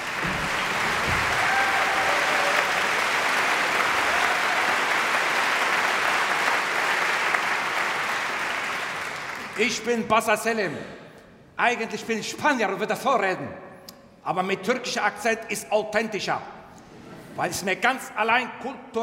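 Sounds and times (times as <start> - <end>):
audience applause: 0.0 - 9.6
speech: 9.6 - 11.0, 11.6 - 13.6, 14.2 - 16.6, 17.4 - 19.0.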